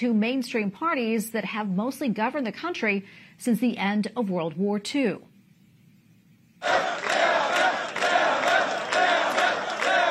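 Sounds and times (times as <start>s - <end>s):
speech: 0.0s - 5.3s, 6.6s - 7.1s
party supporters cheering at election celebration: 6.6s - 10.0s.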